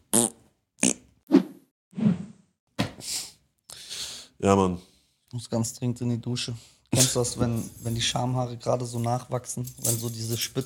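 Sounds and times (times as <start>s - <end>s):
farts: 0.1s - 1.0s
speech: 4.4s - 10.6s.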